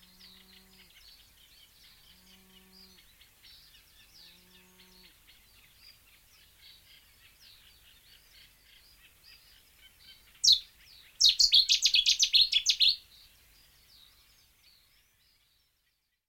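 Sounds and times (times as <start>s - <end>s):
warbler singing: 0.0s - 15.8s.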